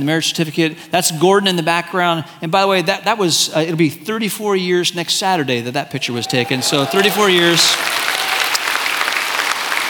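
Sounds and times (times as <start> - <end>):
speech: 0.0 - 8.1
crowd applause: 6.5 - 9.8.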